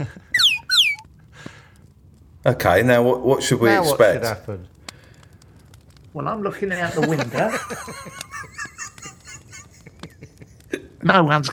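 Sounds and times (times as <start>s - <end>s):
whistle being blown: 0.2s - 1.1s
speech: 2.4s - 4.7s, 6.1s - 8.3s, 11.0s - 11.5s
laughter: 6.6s - 10.8s.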